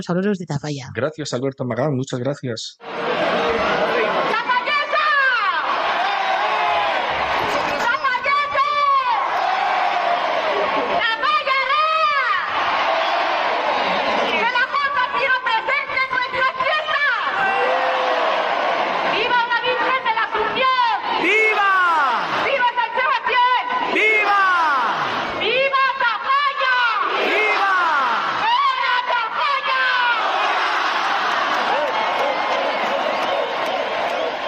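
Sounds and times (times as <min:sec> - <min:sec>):
speech: 0:00.0 - 0:03.6
crowd cheering at festival opening rocket: 0:02.8 - 0:34.4.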